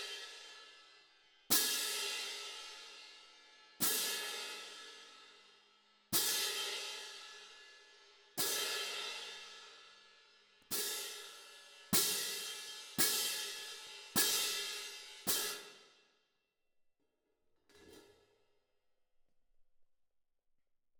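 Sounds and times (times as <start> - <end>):
cymbal: 0.0 - 5.5, 6.1 - 10.0, 10.7 - 16.0.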